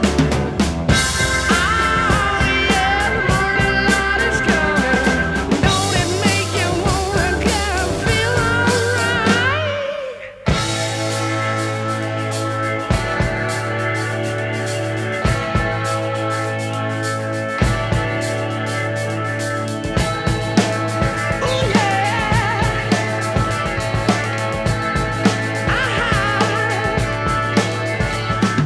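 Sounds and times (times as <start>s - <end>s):
rock music: 0.0s - 28.6s.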